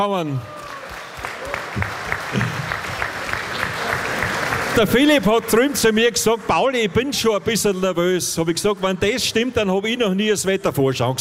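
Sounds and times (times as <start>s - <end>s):
speech: 0.0s - 0.6s, 4.8s - 11.1s
audience applause: 0.4s - 8.0s.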